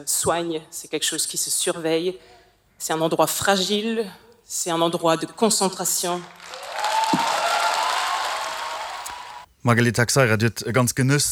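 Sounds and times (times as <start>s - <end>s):
speech: 0.0s - 7.2s, 9.6s - 11.3s
audience applause after a speech: 6.2s - 9.4s.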